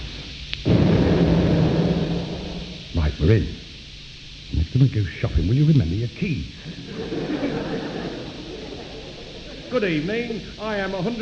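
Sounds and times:
explosion: 0.6s - 3.6s
speech: 3.2s - 3.6s, 4.5s - 7.1s, 9.7s - 11.1s
laughter: 6.6s - 11.1s.

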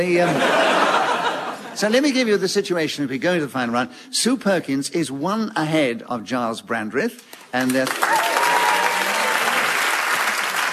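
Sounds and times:
speech: 0.0s - 0.7s, 1.8s - 8.4s
laughter: 0.1s - 1.8s
studio audience applause during a panel game show's final round: 7.4s - 10.7s.

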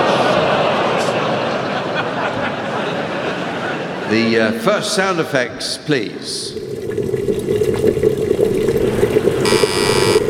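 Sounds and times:
laughter: 0.0s - 4.8s
speech: 4.1s - 6.6s
kettle: 6.6s - 10.2s.

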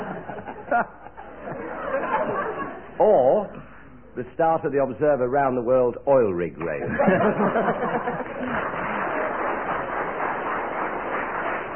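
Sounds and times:
laughter: 0.0s - 3.0s, 6.8s - 9.8s
speech: 0.7s - 1.9s, 3.0s - 3.6s, 4.2s - 8.9s
ripple of audience applause: 7.4s - 11.7s.

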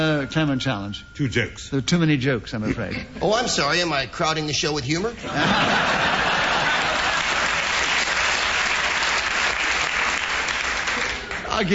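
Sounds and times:
speech: 0.0s - 6.2s, 11.6s - 11.7s
laughter: 2.6s - 3.8s, 5.2s - 8.0s
audience applause: 5.9s - 11.7s.

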